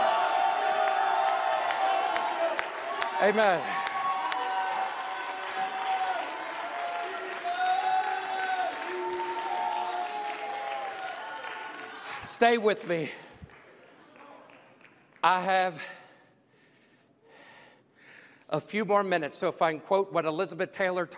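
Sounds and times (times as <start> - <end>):
cheering: 0.0 - 13.2
applause: 0.0 - 15.9
speech: 3.2 - 3.8, 12.4 - 13.2, 15.2 - 16.0, 18.5 - 21.1.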